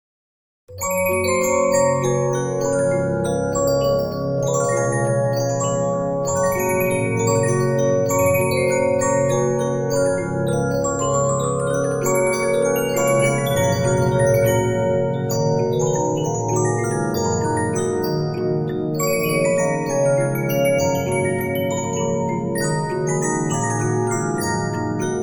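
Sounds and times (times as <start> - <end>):
Regina 15-inch disc music box: 0.7 - 25.2.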